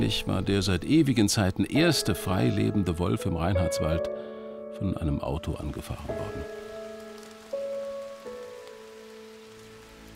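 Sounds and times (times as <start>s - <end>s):
speech: 0.0s - 6.6s
rain falling on a forest lake: 5.4s - 10.1s.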